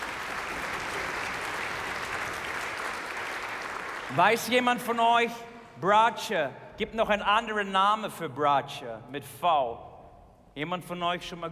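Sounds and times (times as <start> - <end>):
big round of applause: 0.0 - 5.0
speech: 4.1 - 9.9, 10.6 - 11.4.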